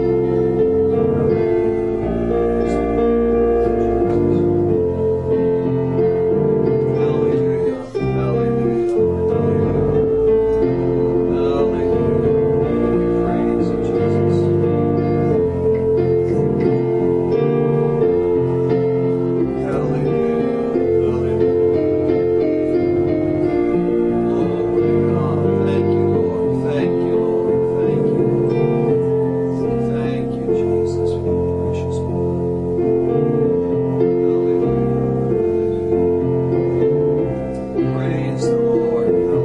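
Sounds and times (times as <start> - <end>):
piano playing a prelude: 0.0 - 39.4.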